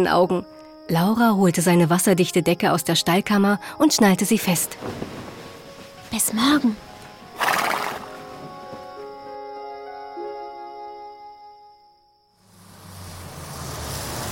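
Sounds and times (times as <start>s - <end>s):
speech: 0.0s - 5.3s, 6.1s - 6.9s
pony whinnying: 7.4s - 8.2s.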